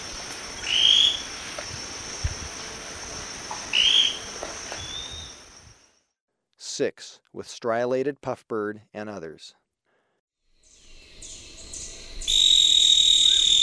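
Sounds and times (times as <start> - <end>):
steady insect hiss: 0.0 - 6.0, 10.6 - 13.6
Scale-crested pygmy-tyrant high whistled notes: 3.7 - 5.4, 10.7 - 13.6
speech: 6.8 - 9.6.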